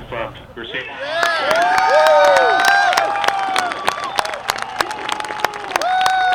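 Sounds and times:
speech: 0:00.3 - 0:01.2
crowd cheering at rover landing: 0:00.8 - 0:06.3
clapping: 0:01.1 - 0:06.3.

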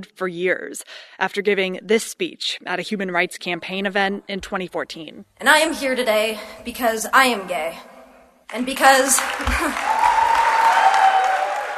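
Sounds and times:
speech: 0:00.0 - 0:07.9, 0:08.5 - 0:10.0
crowd clapping for a standing ovation at a Human Rights Campaign event: 0:08.5 - 0:11.7.

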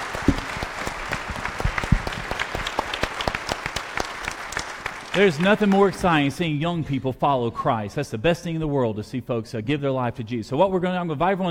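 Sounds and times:
audience applause: 0:00.0 - 0:06.3
speech: 0:05.2 - 0:11.5.

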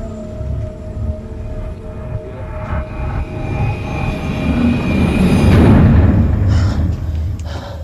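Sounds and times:
TV transition sound effect with airplane noise: 0:02.4 - 0:07.4.

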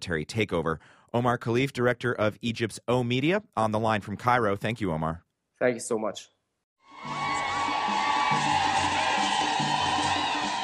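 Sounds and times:
speech: 0:00.0 - 0:06.4
ecstatic crowd in Tanzania cheering a welcome: 0:06.9 - 0:10.6.

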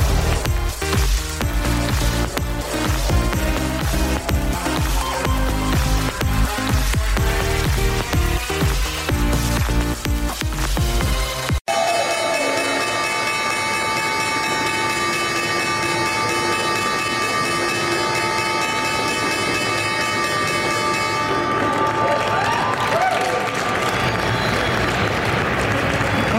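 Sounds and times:
stock exchange opening bell ringing: 0:00.0 - 0:09.7, 0:11.7 - 0:22.4
busy rhythmic music: 0:00.0 - 0:22.1
crowd applause and cheering: 0:00.0 - 0:26.3.

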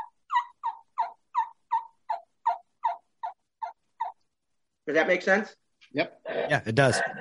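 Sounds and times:
turkey mouth call kee-kee whistle and yelps: 0:00.0 - 0:04.3
speech: 0:04.9 - 0:07.2.

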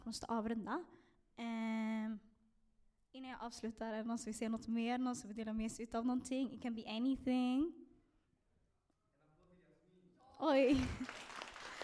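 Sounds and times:
speech: 0:00.0 - 0:02.3, 0:03.1 - 0:07.8, 0:10.4 - 0:11.2
audience applause: 0:10.7 - 0:11.8.

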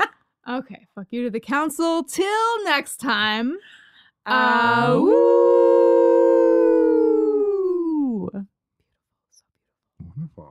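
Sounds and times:
speech: 0:00.6 - 0:05.8
people howling together like wolves: 0:04.6 - 0:08.3.

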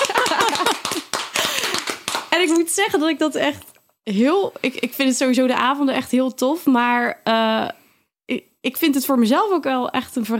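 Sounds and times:
applause, hands clapping: 0:00.0 - 0:02.7
speech: 0:02.4 - 0:10.3.

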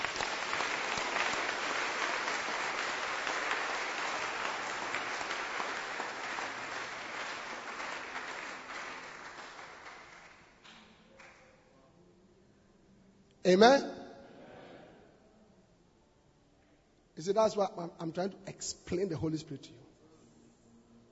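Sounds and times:
audience clapping hands: 0:00.0 - 0:11.4
speech: 0:13.5 - 0:13.9, 0:17.2 - 0:19.9.

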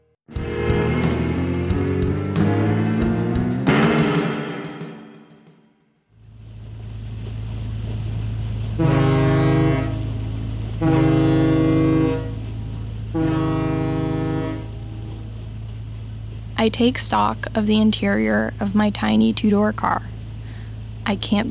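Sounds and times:
ferry ship engine rumble: 0:00.3 - 0:04.0, 0:06.3 - 0:21.4
ferry ship's horn blasts: 0:00.3 - 0:05.1, 0:08.7 - 0:15.7
speech: 0:16.6 - 0:20.1, 0:21.1 - 0:21.4.

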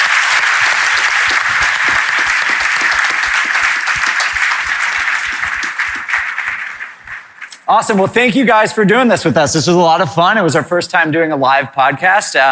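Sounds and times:
audience applause: 0:00.0 - 0:07.6
speech: 0:07.7 - 0:12.5.

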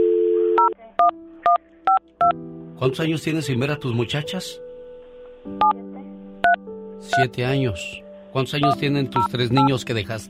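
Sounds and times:
telephone dial tone: 0:00.0 - 0:01.1
speech: 0:00.7 - 0:04.6, 0:05.4 - 0:06.1, 0:07.0 - 0:10.2
telephone keypad tones: 0:08.6 - 0:09.7.

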